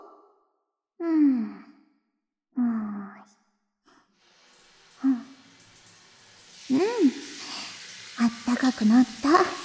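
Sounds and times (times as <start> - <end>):
shower water rinsing off soap foam: 4.1 - 9.6
speech: 8.6 - 9.6.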